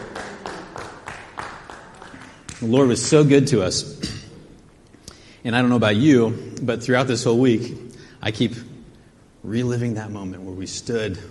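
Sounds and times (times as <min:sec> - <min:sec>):
crowd clapping hands in a steady rhythm: 0:00.0 - 0:03.2
speech: 0:02.6 - 0:04.0, 0:05.4 - 0:08.7, 0:09.4 - 0:11.2.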